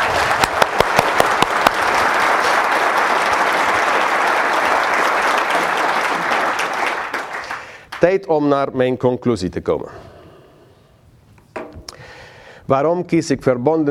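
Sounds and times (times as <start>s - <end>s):
audience applause: 0.0s - 8.0s
speech: 8.0s - 10.1s, 12.7s - 13.8s.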